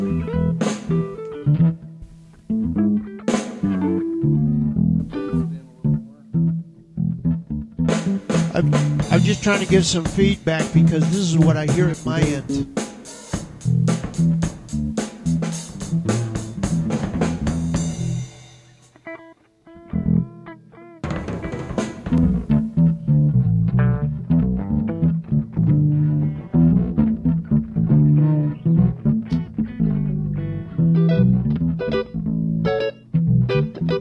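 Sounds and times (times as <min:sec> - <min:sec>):
bass guitar with heavy reverb playing low notes: 0:00.0 - 0:18.7, 0:19.7 - 0:34.0
dense loud music mix: 0:08.3 - 0:18.4
speech: 0:09.4 - 0:12.8.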